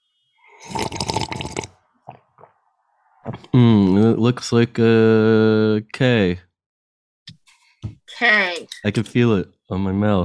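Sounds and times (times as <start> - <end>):
slurping alphabet soup: 0.5 - 4.0
mouth smacks and gulps: 0.7 - 3.7
speech: 3.6 - 6.5, 8.2 - 10.2.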